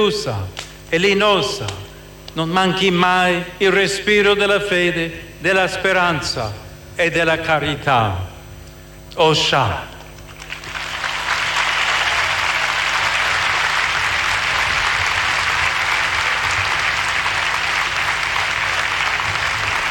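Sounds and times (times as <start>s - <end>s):
speech: 0.0s - 8.3s, 9.2s - 9.9s
large stadium crowd applauding at Arena stadium in Lampedusa: 10.0s - 19.8s.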